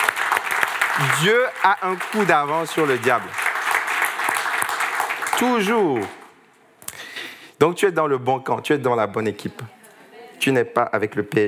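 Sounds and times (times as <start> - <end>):
audience applause: 0.0 - 6.3
speech: 1.0 - 3.4, 5.4 - 6.2, 7.6 - 9.8, 10.4 - 11.4.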